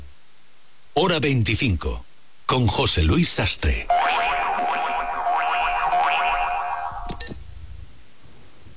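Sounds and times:
speech: 1.0 - 4.2
stopwatch beeping: 3.9 - 7.4.

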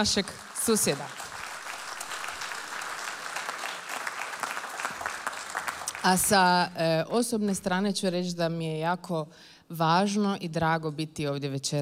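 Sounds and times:
speech: 0.0 - 1.2, 6.0 - 11.8
audience applause at an evening concert: 0.0 - 6.3.

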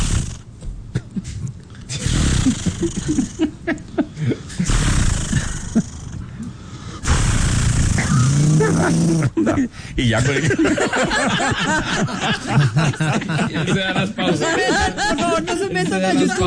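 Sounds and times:
man's voice imitating a chainsaw starting and running: 0.0 - 0.4, 1.9 - 3.4, 4.6 - 6.2, 7.0 - 9.4
laughter: 1.0 - 4.7, 8.4 - 16.4
speech: 2.8 - 3.8, 9.1 - 16.4.

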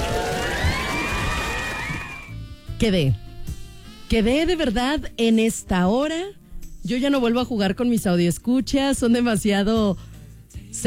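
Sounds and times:
audience cheering and whooping: 0.0 - 2.4
speech: 2.8 - 3.2, 4.1 - 10.8.

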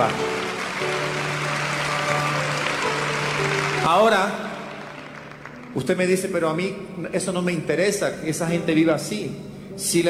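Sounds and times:
speech: 0.0 - 1.1, 3.8 - 4.4, 5.8 - 10.0
audience applauding: 0.0 - 6.3.

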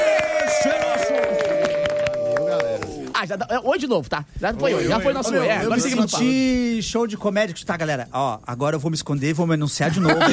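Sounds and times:
hysterical screaming: 0.0 - 3.1
applause: 0.0 - 3.2
speech: 3.3 - 10.3.

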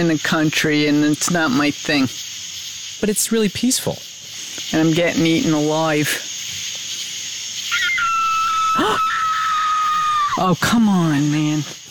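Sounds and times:
speech: 0.0 - 2.3, 3.0 - 6.3, 10.4 - 11.8
insects whirring: 0.0 - 11.8
coyote or fox screaming at night: 7.7 - 10.5.

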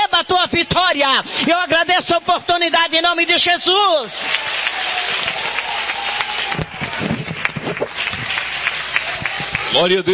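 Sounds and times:
speech: 0.2 - 5.6, 9.7 - 10.1
applause: 3.9 - 10.1.

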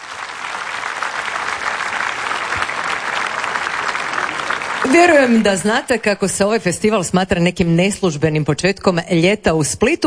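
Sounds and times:
festival audience applause in Split for the festival orchestra: 0.0 - 5.9
speech: 4.9 - 10.0.

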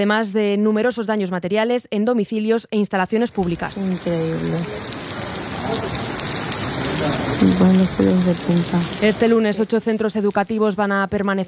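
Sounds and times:
speech: 0.0 - 5.0, 5.7 - 6.1, 7.0 - 11.4
heavy rain pouring: 3.3 - 10.9.

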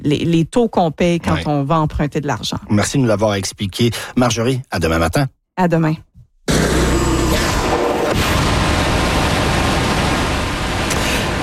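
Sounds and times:
speech: 0.0 - 6.1
rocket engine test firing roar: 6.5 - 11.4.

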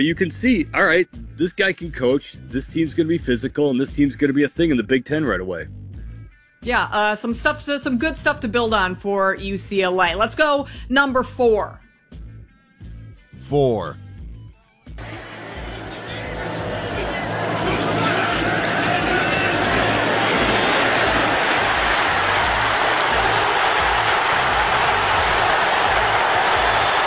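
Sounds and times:
speech: 0.0 - 5.8, 6.6 - 11.8, 13.4 - 14.0
stadium crowd roar: 15.0 - 27.0.

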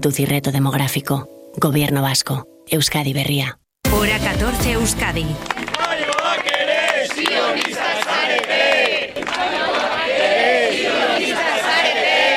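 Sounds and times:
speech: 0.0 - 5.6
scattered claps: 5.4 - 10.0
crowd of supporters shouting chants: 5.7 - 12.3.

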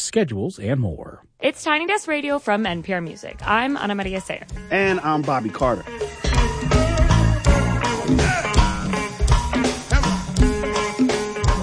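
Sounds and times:
speech: 0.1 - 6.2
go-go music, funk with heavy percussion: 3.4 - 11.6.

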